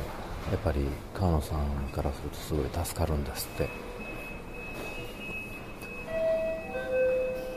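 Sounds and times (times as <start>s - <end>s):
speech: 0.5s - 4.0s
station two-note electronic chime: 5.8s - 7.5s.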